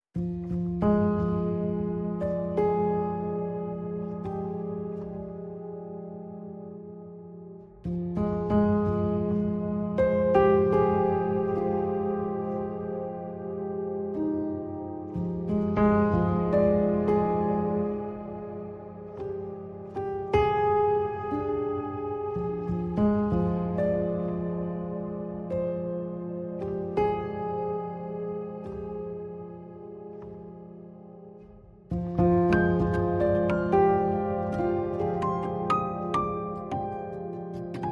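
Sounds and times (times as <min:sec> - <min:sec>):
pianos playing: 0:00.2 - 0:37.9.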